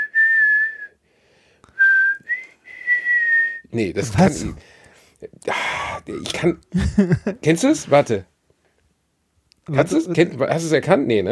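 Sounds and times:
person whistling a classical orchestral melody: 0:00.0 - 0:01.0, 0:01.7 - 0:03.7
speech: 0:03.7 - 0:08.3, 0:09.7 - 0:11.3.

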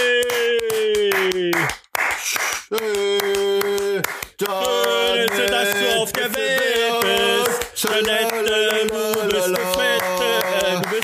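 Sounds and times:
clapping: 0:00.0 - 0:11.0.

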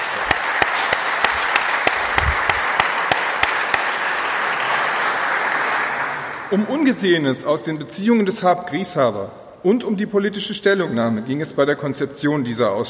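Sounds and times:
audience applause: 0:00.0 - 0:06.6
speech: 0:06.5 - 0:12.8.

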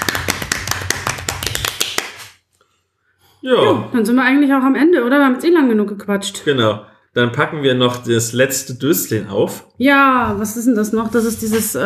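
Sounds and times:
people clapping: 0:00.0 - 0:02.4
speech: 0:03.4 - 0:11.8.

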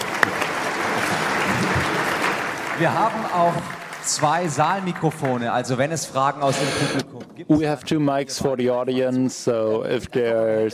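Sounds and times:
small round of audience applause: 0:00.0 - 0:06.3
speech: 0:02.8 - 0:10.7.

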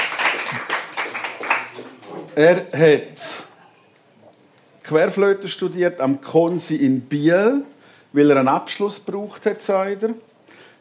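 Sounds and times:
audience applause: 0:00.0 - 0:02.6
speech: 0:02.4 - 0:03.4, 0:04.9 - 0:10.7.

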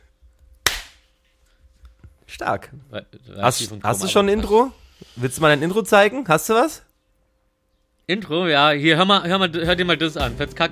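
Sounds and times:
single hand clap for sync: 0:00.6 - 0:01.0
speech: 0:02.3 - 0:06.8, 0:08.1 - 0:10.7.

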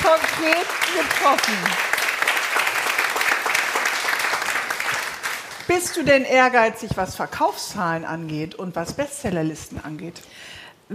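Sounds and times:
audience applause: 0:00.0 - 0:05.8
speech: 0:00.4 - 0:01.9, 0:05.7 - 0:10.9.

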